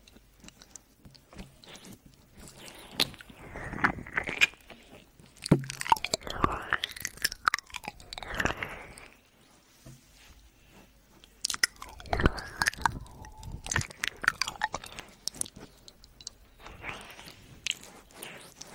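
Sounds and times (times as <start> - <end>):
woman's wet saliva ear licking voice: 0.0 - 9.2, 10.3 - 18.7.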